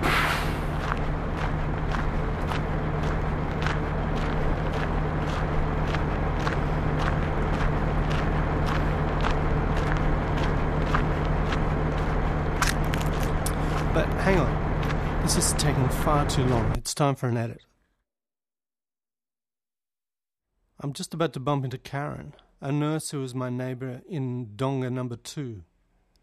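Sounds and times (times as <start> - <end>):
footsteps: 0.0 - 16.7
road trains passing on highway: 0.0 - 16.8
speech: 16.1 - 17.7, 20.8 - 25.7.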